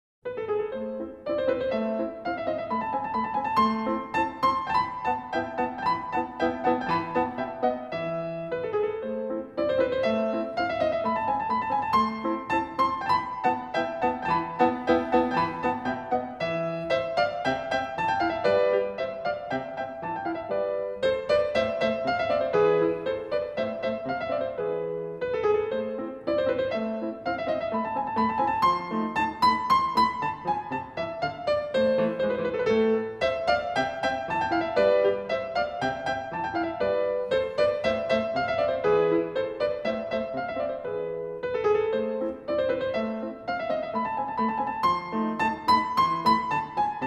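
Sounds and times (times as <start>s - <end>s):
piano sonata in A major: 0.2s - 47.0s.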